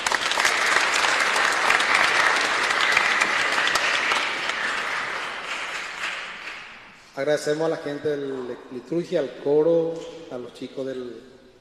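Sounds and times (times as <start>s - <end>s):
audience applause: 0.0s - 7.0s
speech: 7.2s - 11.3s.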